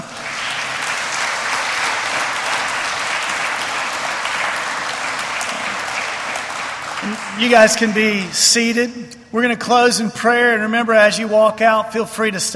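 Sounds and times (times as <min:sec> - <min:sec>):
audience applause: 0:00.0 - 0:08.7
speech: 0:07.1 - 0:12.5.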